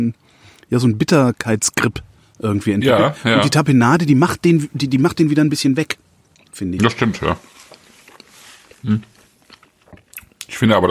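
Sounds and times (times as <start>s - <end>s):
speech: 0.0s - 6.0s, 6.6s - 7.6s, 8.8s - 9.1s, 10.5s - 10.9s
chewing a vintage sardine: 6.3s - 10.6s.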